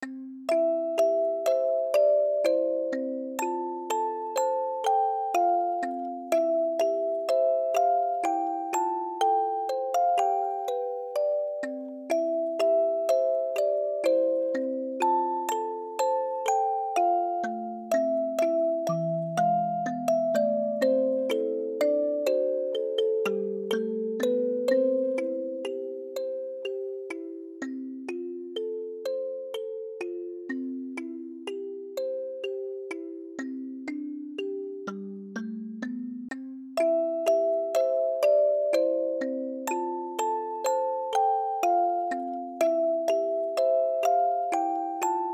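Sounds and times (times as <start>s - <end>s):
music box: 0.0s - 45.3s.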